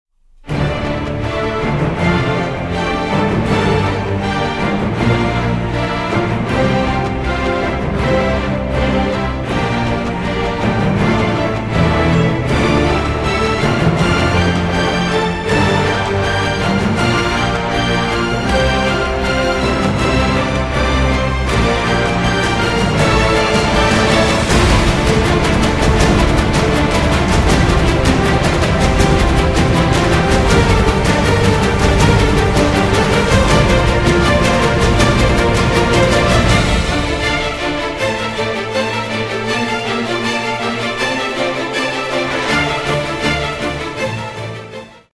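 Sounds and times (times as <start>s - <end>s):
instrumental music: 0.3s - 45.1s.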